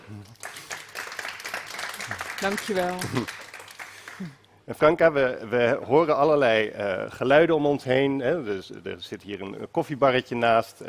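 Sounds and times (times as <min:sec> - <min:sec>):
audience applause: 0:00.3 - 0:04.4
speech: 0:02.4 - 0:03.4, 0:04.2 - 0:10.8.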